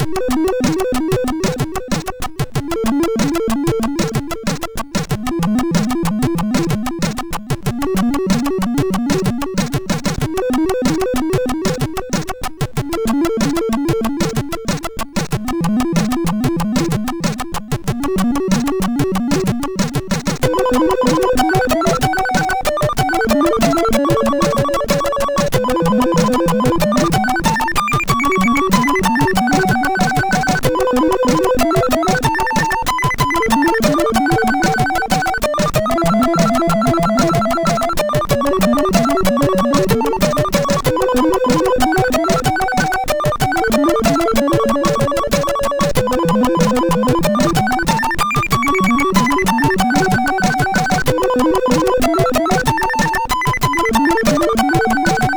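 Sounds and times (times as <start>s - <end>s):
SID MOS6581R2 chip synth without bass: 0.0s - 55.3s.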